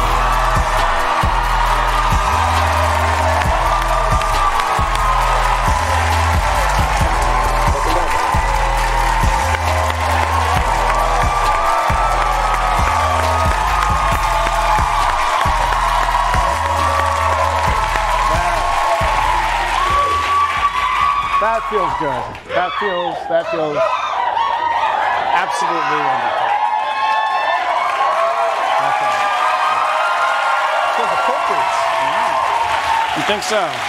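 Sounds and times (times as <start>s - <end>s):
rhythmic low thumping beat: 0.0s - 21.7s
studio audience applauding and cheering as a talk-show guest walks out: 0.0s - 33.8s
speech: 22.0s - 24.0s, 25.6s - 26.4s, 33.3s - 33.8s.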